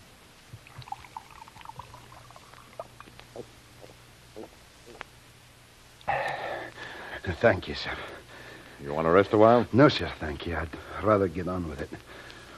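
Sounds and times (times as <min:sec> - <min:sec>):
water pouring into a glass: 0:00.6 - 0:03.5
speech: 0:07.4 - 0:08.2, 0:08.8 - 0:12.5.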